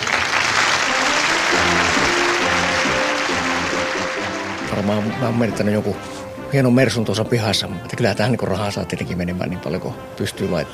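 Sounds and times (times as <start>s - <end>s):
audience applause: 0.0s - 5.3s
speech: 4.8s - 10.7s.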